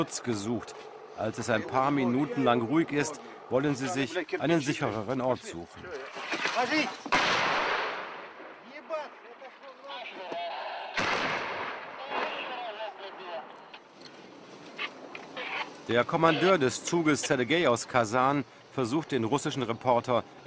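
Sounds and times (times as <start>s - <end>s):
speech: 0.0s - 7.4s, 15.9s - 20.4s
artillery fire shelling a village: 7.1s - 8.6s, 10.9s - 13.2s.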